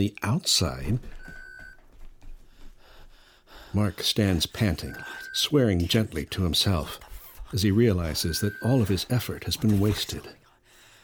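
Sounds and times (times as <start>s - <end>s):
speech: 0.0s - 1.2s, 3.7s - 10.4s
electronic beep: 0.9s - 1.8s, 4.3s - 6.9s, 7.6s - 10.2s.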